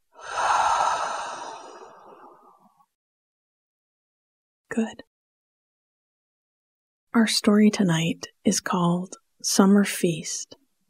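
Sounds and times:
long audible breath through the mouth: 0.2s - 2.6s
speech: 4.8s - 5.1s, 7.1s - 10.6s.

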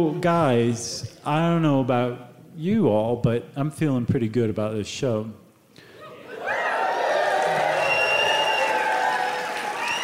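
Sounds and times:
speech: 0.0s - 5.4s
voices cheering: 6.2s - 10.0s
audience clapping: 6.4s - 10.0s.

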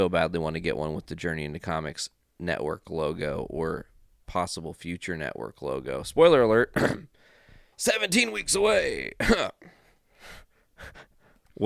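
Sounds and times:
speech: 0.0s - 7.2s, 7.8s - 11.6s
harsh coughs: 6.8s - 7.1s, 9.2s - 9.7s.

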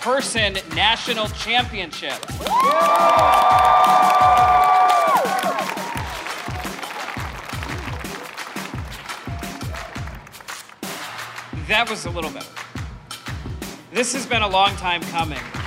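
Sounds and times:
speech: 0.0s - 4.7s, 11.7s - 12.5s, 14.0s - 15.5s
rhythmic pulsing beat: 0.1s - 15.6s
crowd cheering and whooping outside a courthouse before a national championship celebration: 2.4s - 10.3s.

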